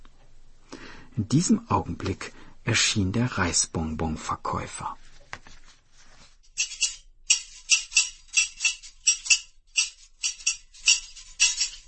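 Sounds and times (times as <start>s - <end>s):
speech: 1.2s - 5.0s
clattering of scissors: 6.6s - 11.8s.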